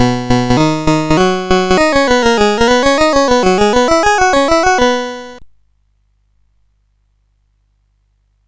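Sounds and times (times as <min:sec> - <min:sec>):
SID CSG8580R5 chip music: 0:00.0 - 0:05.4.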